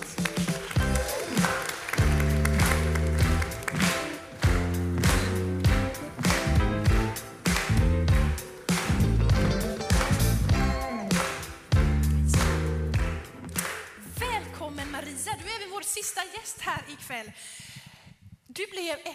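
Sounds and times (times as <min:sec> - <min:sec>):
audience applause: 0:00.0 - 0:13.9.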